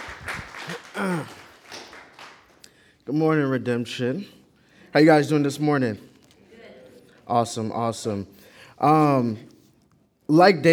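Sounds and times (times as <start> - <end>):
audience applause: 0.0 - 2.6
speech: 3.1 - 6.1, 7.3 - 9.5, 10.3 - 10.7.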